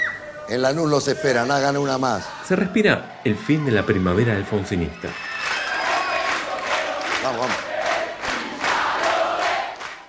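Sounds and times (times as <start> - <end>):
rock concert audience chanting rival crowd chants: 0.1 - 10.0
speech: 0.5 - 5.3, 7.2 - 7.7
clapping: 6.2 - 10.0.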